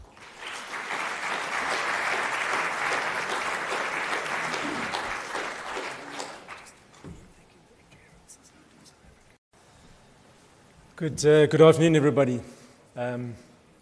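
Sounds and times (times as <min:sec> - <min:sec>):
audience applause welcoming guest speakers: 0:00.0 - 0:06.8
speech: 0:11.0 - 0:13.5.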